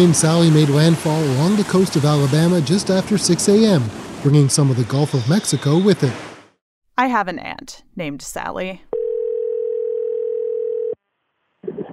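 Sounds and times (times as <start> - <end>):
speech: 0.0 - 6.3, 7.0 - 8.9
telephone dial tone of outgoing call: 9.0 - 11.0.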